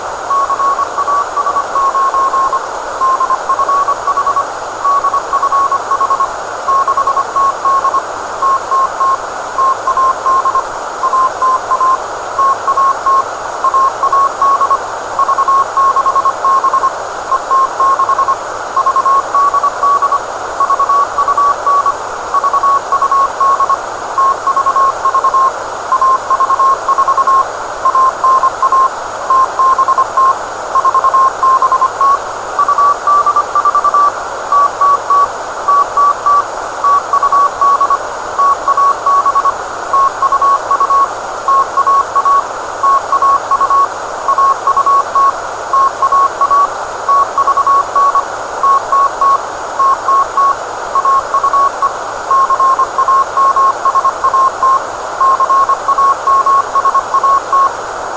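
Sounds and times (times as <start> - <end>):
CW morse code beacon: 0.3 - 57.8.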